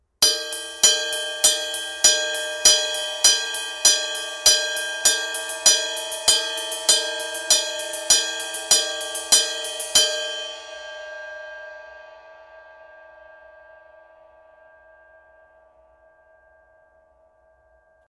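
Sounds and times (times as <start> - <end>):
Zildjian cymbal: 0.0 - 18.0.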